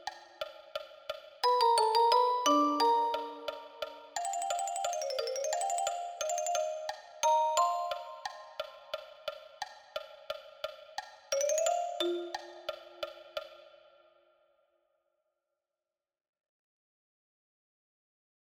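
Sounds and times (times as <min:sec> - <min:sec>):
marimba: 0:01.4 - 0:09.0, 0:11.3 - 0:13.4.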